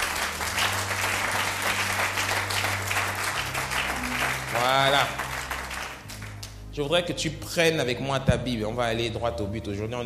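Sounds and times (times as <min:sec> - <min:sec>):
church congregation clapping: 0:00.0 - 0:06.7
speech: 0:04.6 - 0:05.2, 0:06.8 - 0:10.0.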